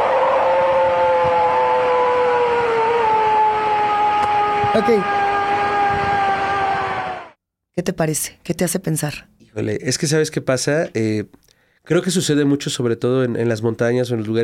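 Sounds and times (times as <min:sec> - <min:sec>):
roar of large hairy forest creature: 0:00.0 - 0:07.4
speech: 0:04.7 - 0:05.2, 0:07.8 - 0:14.4.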